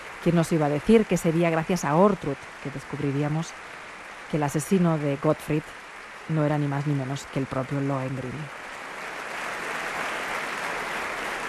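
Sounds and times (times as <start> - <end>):
speech: 0.2 - 8.6
audience applauding after an opera performance: 8.6 - 11.4.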